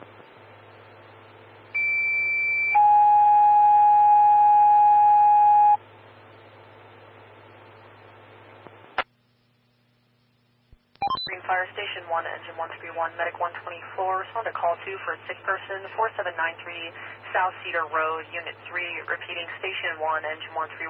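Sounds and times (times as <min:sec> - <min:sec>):
fire station dispatch alert tones: 0:01.8 - 0:05.8, 0:11.0 - 0:11.4
speech: 0:12.0 - 0:20.8.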